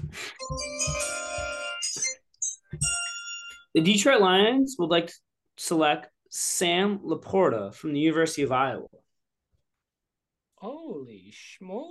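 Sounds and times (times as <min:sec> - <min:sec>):
low thumping beats: 0:00.0 - 0:01.6
ringtone-like electronic chime jingle: 0:00.4 - 0:03.7
speech: 0:03.7 - 0:09.0, 0:10.6 - 0:11.8.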